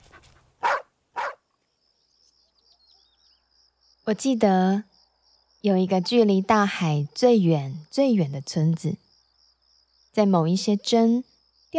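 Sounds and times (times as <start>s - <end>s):
small dog barking excitedly: 0.0s - 1.4s
speech: 4.1s - 4.9s, 5.6s - 9.0s, 10.2s - 11.3s.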